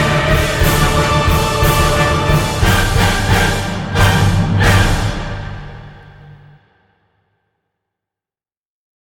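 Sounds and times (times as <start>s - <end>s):
orchestral music: 0.0s - 6.8s.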